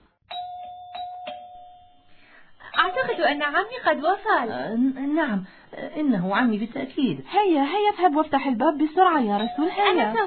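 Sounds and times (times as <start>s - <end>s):
electronic doorbell chime: 0.3s - 2.2s
speech: 2.9s - 10.2s.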